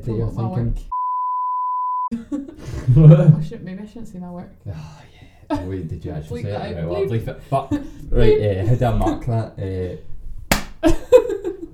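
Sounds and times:
speech: 0.0 - 1.0, 2.1 - 10.1, 10.8 - 11.3
hand clap used as audio sync marker: 10.5 - 10.8.

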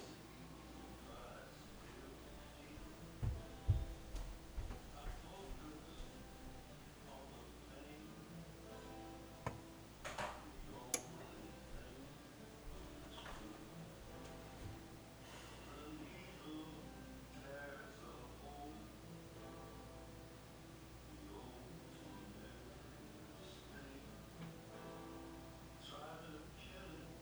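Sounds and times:
people talking: 0.0 - 3.9, 4.8 - 8.3, 10.6 - 12.2, 12.8 - 13.9, 15.6 - 19.0, 21.1 - 24.1, 25.8 - 27.2
low steady hum: 0.0 - 27.2
soft thuds: 2.8 - 6.5.

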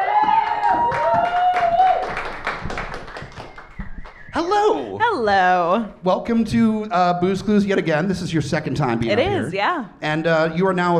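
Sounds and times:
live show audience clapping to welcome a guest: 0.0 - 4.6
speech: 5.2 - 10.9.

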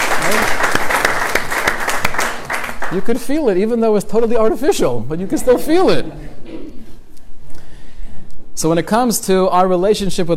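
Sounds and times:
audience round of applause: 0.0 - 3.1
speech: 2.9 - 6.4, 8.6 - 10.3.

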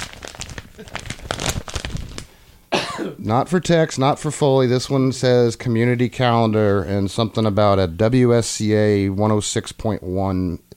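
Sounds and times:
envelope being torn open: 0.0 - 2.3
speech: 0.8 - 1.6, 3.0 - 10.7.

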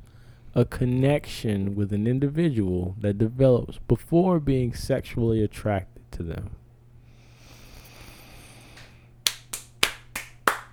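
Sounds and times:
speech: 0.6 - 6.6
small group clapping: 8.8 - 10.7.

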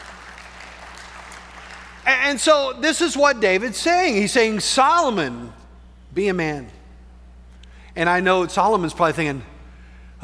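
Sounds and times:
crowd clapping: 0.0 - 2.2
speech: 2.1 - 6.8, 8.0 - 9.5.

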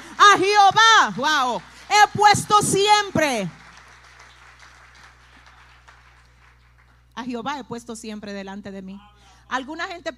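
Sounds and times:
speech: 0.4 - 3.6, 7.2 - 10.1
audience applause: 3.5 - 7.0.

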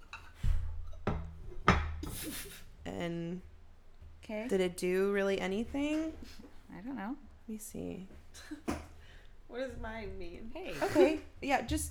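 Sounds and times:
porcelain teacup flipped upside down onto its saucer: 0.6 - 2.2
speech: 2.2 - 3.5, 4.3 - 8.8, 9.5 - 11.8.

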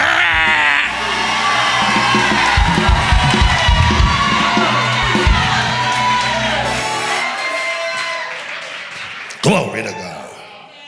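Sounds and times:
audience roaring like lions: 0.0 - 8.8.

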